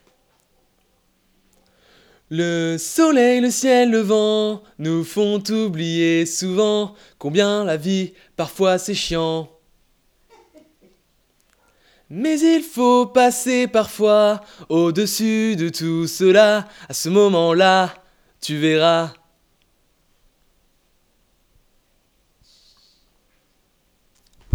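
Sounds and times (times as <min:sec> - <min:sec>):
lead vocal: 0:02.2 - 0:09.6, 0:12.1 - 0:19.3.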